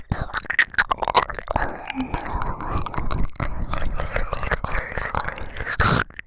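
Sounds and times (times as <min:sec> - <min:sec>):
strong slurping ear licking: 0:00.1 - 0:06.1.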